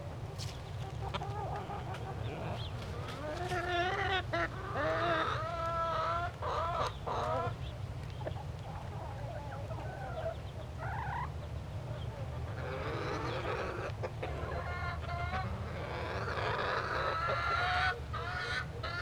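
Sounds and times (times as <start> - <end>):
chickens cackling: 0.1 - 19.0.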